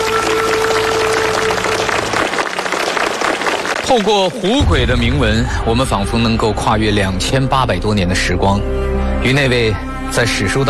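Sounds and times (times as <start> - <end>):
audience applause: 0.0 - 4.6
speech: 3.9 - 10.6.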